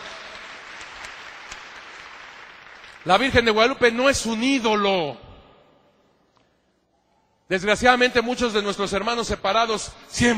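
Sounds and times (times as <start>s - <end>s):
audience applause: 0.0s - 3.3s
speech: 3.0s - 5.3s, 7.5s - 10.3s.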